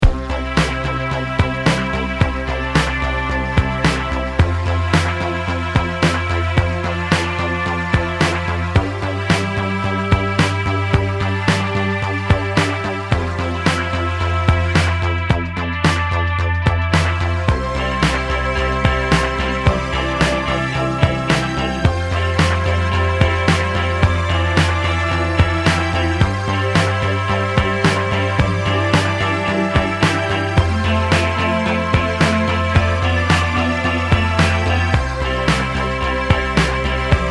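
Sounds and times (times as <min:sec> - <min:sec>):
synth: 0:00.0 - 0:37.2.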